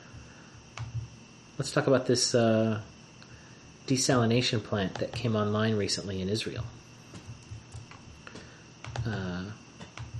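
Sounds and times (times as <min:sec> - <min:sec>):
speech: 0:01.6 - 0:02.9, 0:03.9 - 0:06.8
computer clicks while opening an online article: 0:07.2 - 0:09.2, 0:09.8 - 0:10.1.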